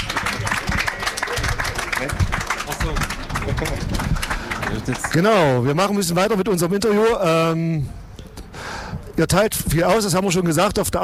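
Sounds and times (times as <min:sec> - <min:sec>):
applause: 0:00.0 - 0:05.9
speech: 0:02.0 - 0:08.0, 0:09.2 - 0:11.0.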